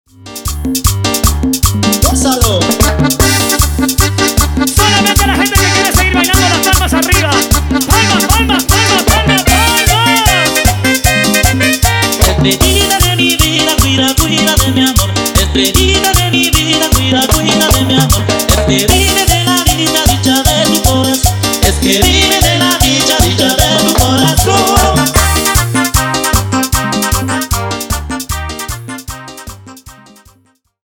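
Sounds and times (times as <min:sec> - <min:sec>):
instrumental music: 0:00.1 - 0:30.8.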